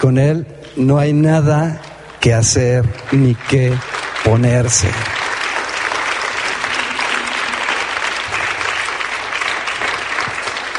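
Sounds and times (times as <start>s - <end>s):
speech: 0.0s - 5.2s
audience applauding: 2.6s - 10.7s.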